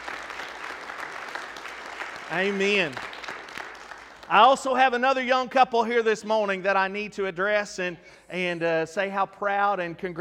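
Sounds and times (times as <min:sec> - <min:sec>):
audience applauding: 0:00.0 - 0:04.8
speech: 0:02.3 - 0:03.1, 0:04.3 - 0:10.1.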